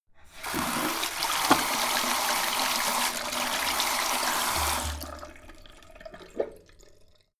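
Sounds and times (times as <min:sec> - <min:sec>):
sink tap running fast: 0:00.3 - 0:04.9.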